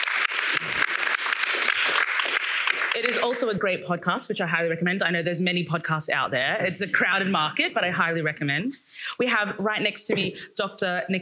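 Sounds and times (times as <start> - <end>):
audience applause: 0.0 - 3.3
speech: 3.0 - 11.2.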